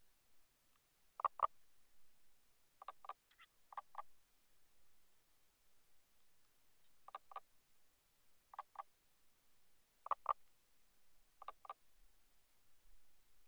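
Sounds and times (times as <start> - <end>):
common spadefoot toads calling at the water recorded with hydrophone: 1.2 - 1.6, 2.8 - 4.1, 7.1 - 7.4, 8.5 - 8.9, 10.0 - 10.4, 11.4 - 11.8.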